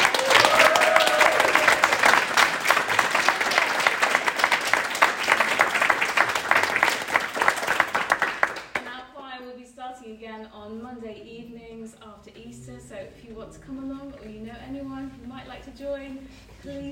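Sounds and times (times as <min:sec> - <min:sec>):
shouts and whoops: 0:00.0 - 0:02.1
large audience applause: 0:00.0 - 0:08.8
speech: 0:13.1 - 0:13.8, 0:15.4 - 0:16.8.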